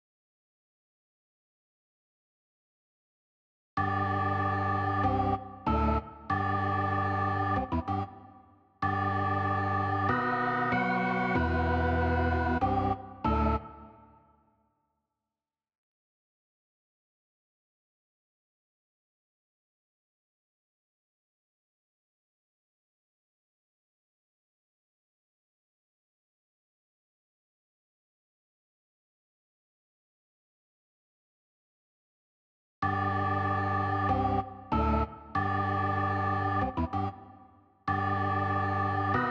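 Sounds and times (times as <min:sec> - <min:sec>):
organ: 0:03.8 - 0:08.1, 0:08.8 - 0:13.9, 0:32.8 - 0:37.3, 0:37.9 - 0:39.2.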